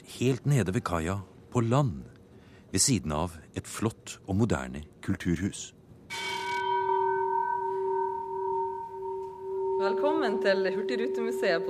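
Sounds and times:
speech: 0.2 - 2.1, 2.7 - 5.8, 9.8 - 11.6
ship's bell of the old Hurtigruten ship Finnmarken ringing: 6.1 - 11.6.

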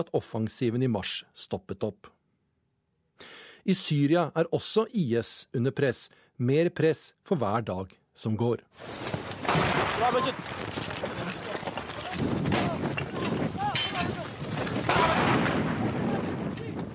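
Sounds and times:
speech: 0.0 - 2.2, 3.2 - 10.5
gunshots and bursts from soldiers in combat: 9.3 - 16.9
dense rumble: 9.5 - 16.9
men shouting: 11.0 - 15.4.

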